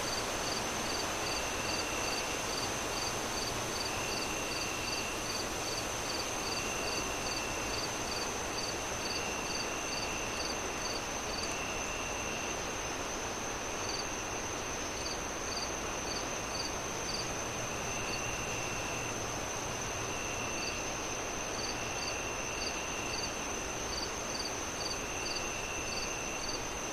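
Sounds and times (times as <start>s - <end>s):
cricket chirps: 0.0s - 26.9s.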